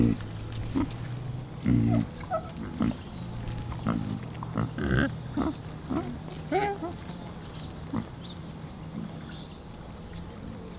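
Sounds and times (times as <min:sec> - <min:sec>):
pig grunts: 0:00.0 - 0:07.0
light bird chirps: 0:00.0 - 0:10.7.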